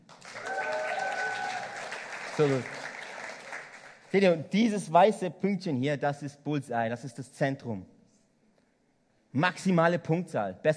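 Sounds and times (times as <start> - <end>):
audience applause: 0.0 - 4.3
faint voices or cheers: 0.3 - 2.0
speech: 2.4 - 2.8, 4.1 - 7.9, 9.3 - 10.7.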